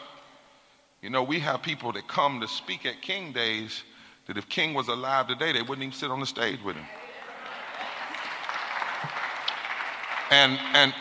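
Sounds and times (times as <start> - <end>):
speech: 1.0 - 7.0, 10.3 - 11.0
crowd clapping: 6.8 - 11.0.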